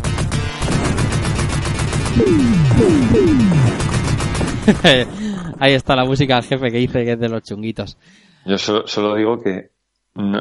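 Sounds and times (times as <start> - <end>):
video game gunfire: 0.0 - 5.8
speech: 2.2 - 3.8, 4.7 - 10.3
laughter: 4.6 - 5.7.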